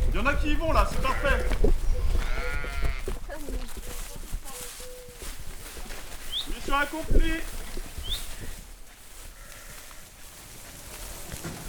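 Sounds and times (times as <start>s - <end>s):
footsteps: 0.0s - 11.6s
speech: 0.2s - 2.2s, 6.7s - 7.6s
sheep bleating: 0.9s - 1.6s, 2.2s - 3.2s, 9.3s - 10.1s.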